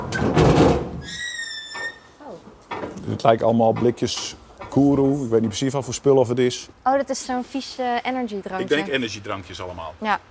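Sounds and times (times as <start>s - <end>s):
customs-sealed cargo door pulled open by its lower handles: 0.0s - 2.1s
long steady high squeal of cargo door: 1.0s - 2.2s
speech: 3.2s - 10.2s.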